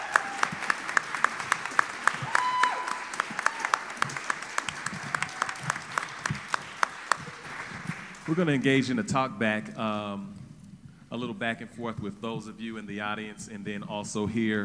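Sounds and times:
audience applause: 0.0 - 9.3
speech: 8.3 - 10.4, 11.1 - 14.6.

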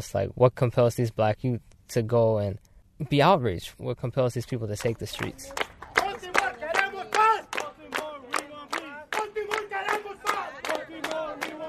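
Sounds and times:
speech: 0.0 - 5.6
marchers clapping: 4.8 - 11.6
marchers chanting: 6.0 - 11.6.

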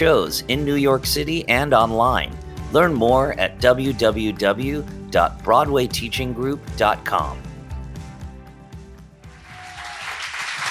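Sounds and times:
speech: 0.0 - 7.5
rhythmic music: 0.0 - 10.6
audience applause: 9.3 - 10.6.

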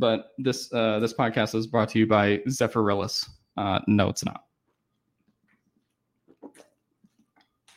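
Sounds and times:
speech: 0.0 - 4.5
person gulping a drink of bottled water: 6.2 - 7.7.

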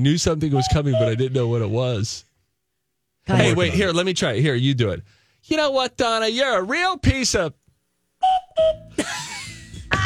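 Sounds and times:
speech: 0.0 - 2.3, 3.2 - 7.6, 8.2 - 9.3
whistle sound effect: 0.6 - 1.3, 8.2 - 8.9.

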